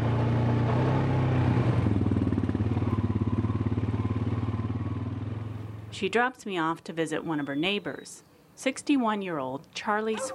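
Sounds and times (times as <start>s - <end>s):
four-wheel all-terrain vehicle engine revving: 0.0s - 6.0s
speech: 6.0s - 10.3s.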